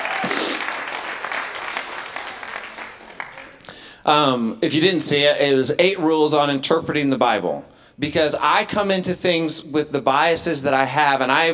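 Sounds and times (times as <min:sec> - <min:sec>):
audience applause: 0:00.0 - 0:03.7
speech: 0:04.0 - 0:11.5.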